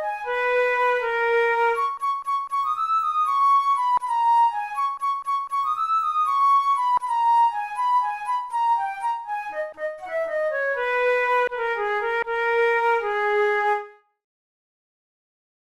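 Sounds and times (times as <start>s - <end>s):
flute studies in G sharp minor: 0.0s - 14.2s.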